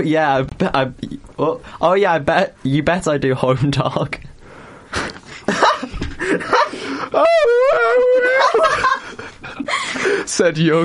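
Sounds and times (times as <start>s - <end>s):
speech: 0.0s - 4.3s, 6.3s - 9.0s, 9.6s - 10.8s
laughter: 5.4s - 10.0s
voice imitating a banshee wail: 7.1s - 8.8s.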